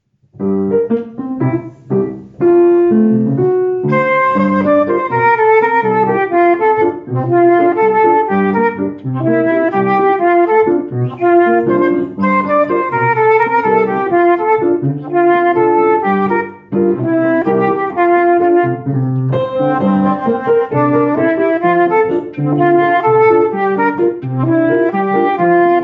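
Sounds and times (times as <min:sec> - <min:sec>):
instrumental solo: 0:00.4 - 0:25.8.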